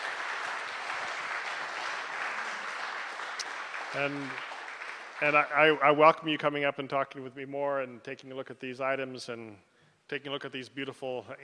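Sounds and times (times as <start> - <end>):
audience applause: 0.0 - 6.0
speech: 3.9 - 4.5, 5.2 - 11.4.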